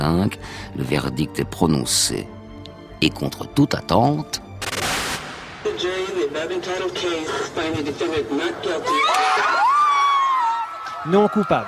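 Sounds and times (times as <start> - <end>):
speech: 0.0 - 2.4, 3.0 - 4.4, 5.7 - 9.6, 11.0 - 11.6
crowd cheering outdoors: 6.2 - 11.6
high rising whoops and shrieks of joy: 8.8 - 11.6.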